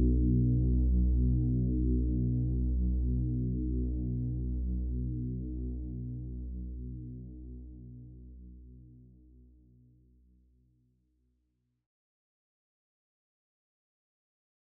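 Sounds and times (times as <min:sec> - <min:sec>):
bass: 0:00.0 - 0:10.6.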